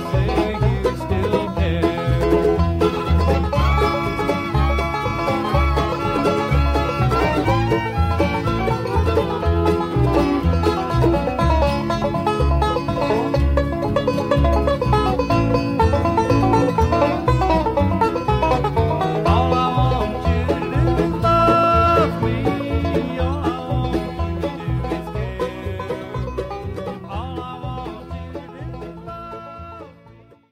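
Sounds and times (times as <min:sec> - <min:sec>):
person singing lead vocal: 0:00.0 - 0:02.6, 0:19.2 - 0:30.1
fiddles playing: 0:00.0 - 0:30.5.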